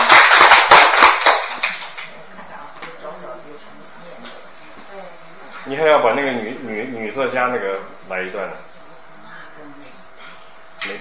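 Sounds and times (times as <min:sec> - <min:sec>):
audience applause: 0:00.0 - 0:02.1
speech: 0:05.7 - 0:08.7.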